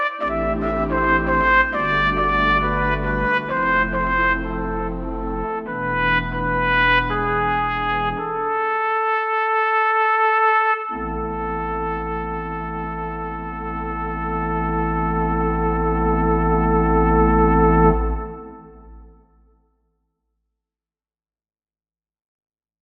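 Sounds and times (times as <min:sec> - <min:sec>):
classic trumpet playing: 0:00.0 - 0:19.4.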